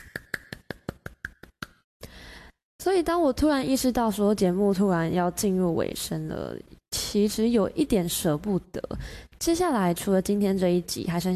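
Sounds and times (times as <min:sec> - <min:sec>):
hand claps: 0:00.0 - 0:01.8
speech: 0:02.8 - 0:11.3.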